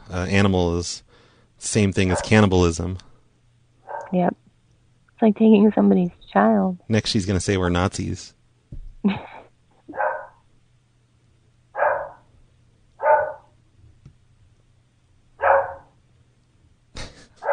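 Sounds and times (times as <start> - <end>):
speech: 0.1 - 3.1, 4.1 - 4.4, 5.2 - 8.4, 9.0 - 9.3
dog barking: 2.1 - 2.4, 3.8 - 4.2, 9.9 - 10.4, 11.8 - 12.3, 13.0 - 13.5, 15.4 - 16.0.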